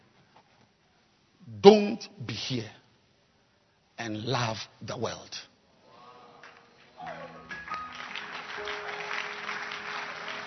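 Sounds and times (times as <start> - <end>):
speech: 1.6 - 2.8, 4.0 - 5.5
hand clapping: 6.4 - 10.4.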